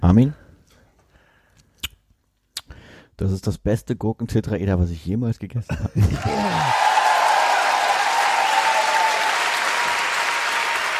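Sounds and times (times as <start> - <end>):
speech: 0.1 - 0.4, 3.2 - 6.8
laughter: 5.7 - 6.9
played-in applause: 6.2 - 10.9.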